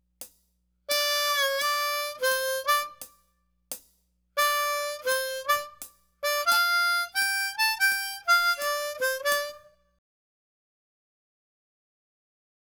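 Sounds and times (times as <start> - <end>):
jazz and pop harmonica: 0.9 - 3.1, 4.4 - 9.8.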